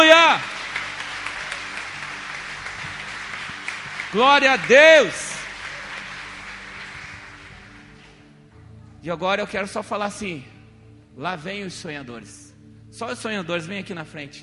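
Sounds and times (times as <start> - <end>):
audience applause: 0.0 - 8.1
speech: 4.1 - 5.2, 9.0 - 10.5, 11.2 - 12.4, 13.0 - 14.4.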